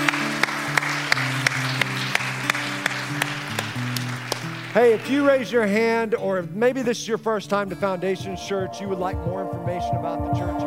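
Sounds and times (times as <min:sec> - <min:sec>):
audience applause: 0:00.0 - 0:05.8
speech: 0:04.8 - 0:10.6.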